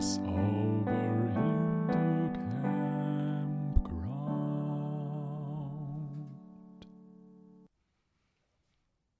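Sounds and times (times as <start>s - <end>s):
bass with piano tutti: 0.0s - 7.6s.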